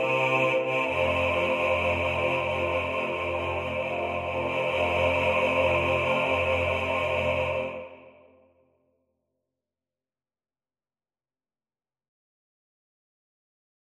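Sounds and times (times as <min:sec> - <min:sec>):
bass: 0:00.0 - 0:07.7.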